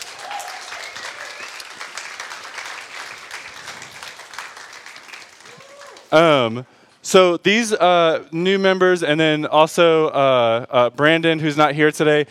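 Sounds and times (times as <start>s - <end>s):
audience applause and hand clapping: 0.0s - 6.2s
speech: 6.1s - 12.2s.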